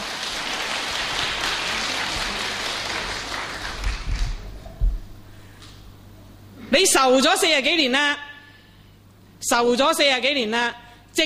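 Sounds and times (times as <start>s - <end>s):
audience applause: 0.0s - 4.6s
speech: 6.7s - 8.2s, 9.5s - 11.2s.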